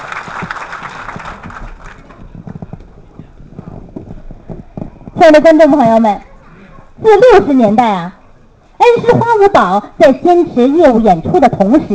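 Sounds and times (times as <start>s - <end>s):
audience applause: 0.0s - 2.4s
speech: 5.2s - 6.3s, 7.0s - 8.2s, 8.9s - 11.9s.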